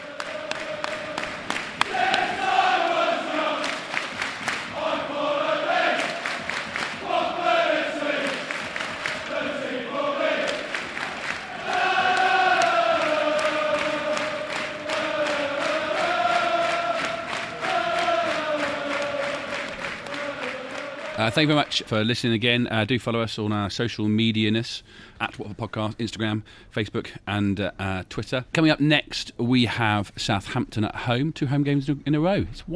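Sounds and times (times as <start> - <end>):
large football crowd chanting in unison: 0.0 - 21.8
loud rhythmic clapping: 0.0 - 21.9
speech: 21.3 - 32.7.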